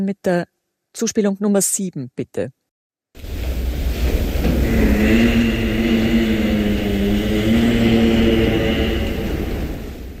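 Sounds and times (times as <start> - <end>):
speech: 0.0 - 2.6
soft rumbling background: 3.2 - 10.1
giraffe humming: 4.4 - 10.1.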